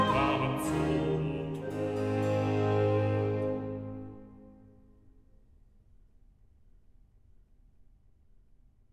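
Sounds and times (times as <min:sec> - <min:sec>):
bass singing recitative: 0:00.0 - 0:04.0.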